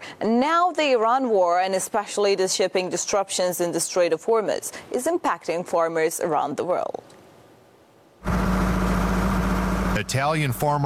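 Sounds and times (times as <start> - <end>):
speech: 0.2 - 7.2, 10.1 - 10.8
diesel engine driving irrigation pumps on a potato field in Fiumicino: 8.2 - 10.8.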